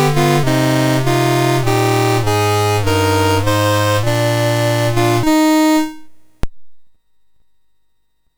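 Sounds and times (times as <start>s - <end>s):
Christmas carol played on a MOS6581R3 sound chip: 0.0s - 6.4s.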